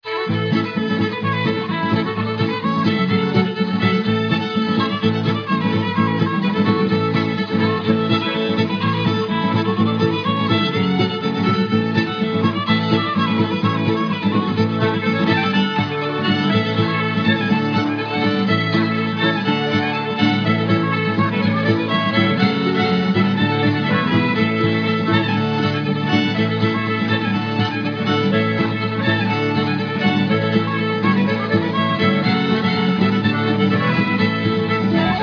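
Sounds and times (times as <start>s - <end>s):
shuffle tune: 0.1s - 35.2s.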